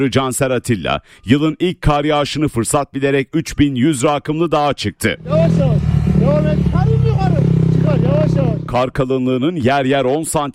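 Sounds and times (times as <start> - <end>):
speech: 0.0 - 7.0, 8.7 - 10.5
motorcycle engine climbing a snow-covered 3100-metre mountain in Erzincan: 5.2 - 8.8.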